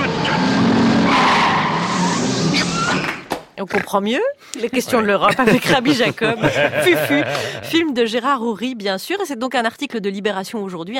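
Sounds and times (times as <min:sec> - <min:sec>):
car engine roar: 0:00.0 - 0:03.1
car tyres skidding and squealing while overtaking: 0:00.0 - 0:04.0
speech: 0:03.6 - 0:10.9
laughter: 0:04.6 - 0:07.9.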